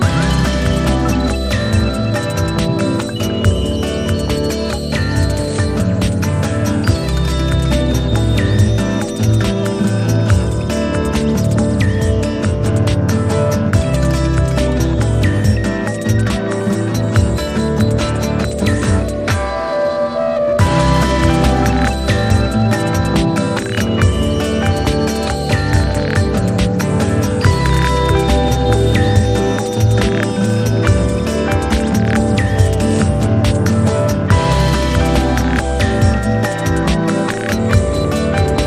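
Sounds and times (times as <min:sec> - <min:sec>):
instrumental music: 0:00.0 - 0:38.6.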